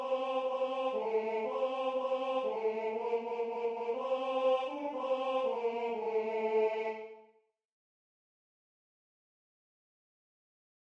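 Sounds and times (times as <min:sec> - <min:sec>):
tenor singing: 0:00.0 - 0:07.2.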